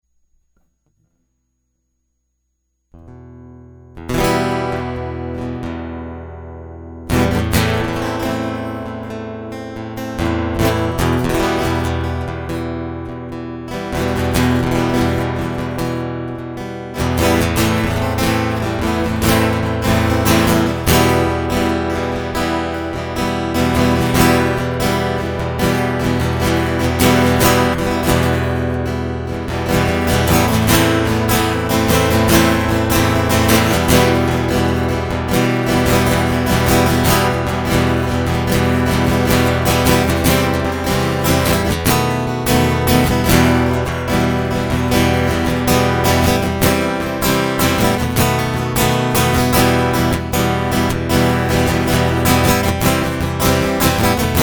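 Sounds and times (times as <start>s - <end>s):
guitar loop: 3.0s - 54.4s.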